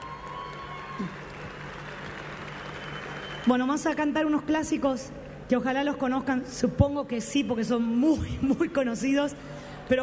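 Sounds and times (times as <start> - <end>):
audience applause: 0.0 - 3.5
speech: 1.0 - 1.2, 3.4 - 10.0.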